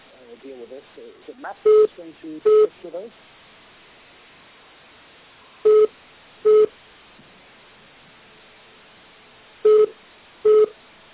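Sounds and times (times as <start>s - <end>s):
speech: 0.4s - 3.4s
telephone beeping: 1.6s - 1.9s, 5.7s - 5.9s, 6.5s - 6.7s, 9.6s - 10.7s.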